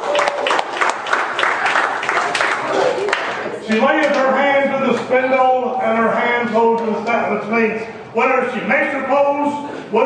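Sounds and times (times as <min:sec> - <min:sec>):
audience applause: 0:00.0 - 0:03.4
speech: 0:03.7 - 0:10.0.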